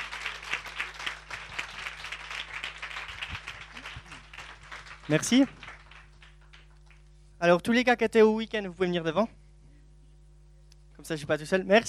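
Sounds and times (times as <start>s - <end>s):
crowd applauding: 0.0s - 7.1s
speech: 5.1s - 5.6s, 7.4s - 9.4s, 11.1s - 11.8s.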